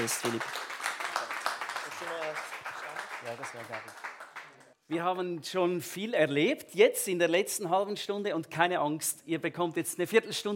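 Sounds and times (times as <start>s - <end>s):
speech: 0.0s - 0.6s, 3.2s - 4.1s, 4.9s - 10.5s
audience applause: 0.0s - 4.7s.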